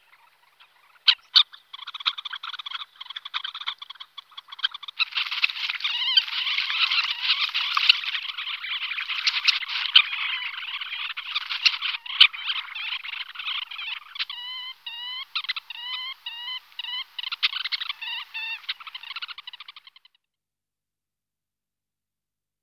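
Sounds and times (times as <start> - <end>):
red-necked phalarope calling: 0.0 - 20.1.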